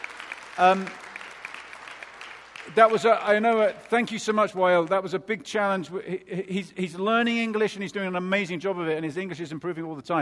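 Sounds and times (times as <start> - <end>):
scattered audience applause: 0.0 - 4.4
speech: 0.6 - 1.0, 2.7 - 10.2.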